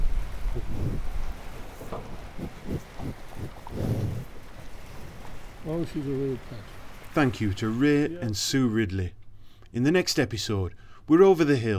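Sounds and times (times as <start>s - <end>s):
cow munching silage: 0.0s - 7.6s
speech: 5.7s - 11.7s.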